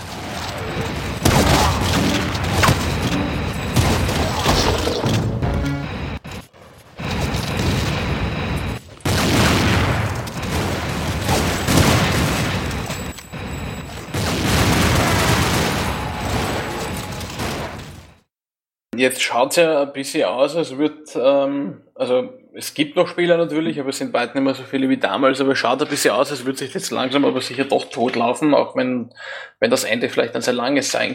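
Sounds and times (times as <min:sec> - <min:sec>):
video-game explosions: 0:00.0 - 0:06.3, 0:07.0 - 0:18.1
video-game gunfire from a team shooter match: 0:00.0 - 0:06.3, 0:07.0 - 0:18.1
speech: 0:19.0 - 0:31.1.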